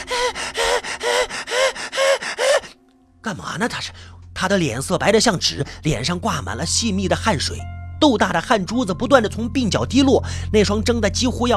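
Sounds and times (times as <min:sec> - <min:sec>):
heavy panting after running: 0:00.0 - 0:02.8
speech: 0:03.2 - 0:11.5.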